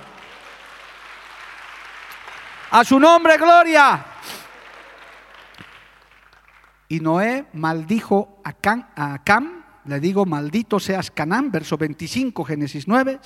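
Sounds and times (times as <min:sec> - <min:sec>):
audience applause: 0:00.0 - 0:06.8
speech: 0:02.7 - 0:04.1, 0:06.9 - 0:13.2.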